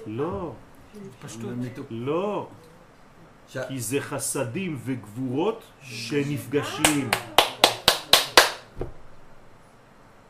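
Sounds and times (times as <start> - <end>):
speech: 0.0 - 2.7, 3.5 - 7.5
hand clapping: 6.8 - 8.7.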